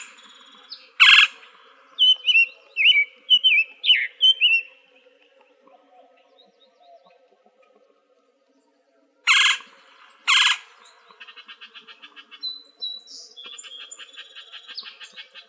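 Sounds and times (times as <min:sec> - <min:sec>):
Gila woodpecker harsh calls in Arizona: 0:00.0 - 0:04.6, 0:09.3 - 0:11.9.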